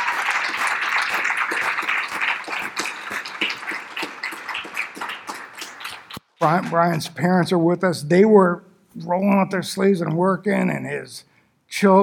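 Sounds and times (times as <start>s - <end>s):
audience applause: 0.0s - 6.8s
speech: 6.4s - 12.0s.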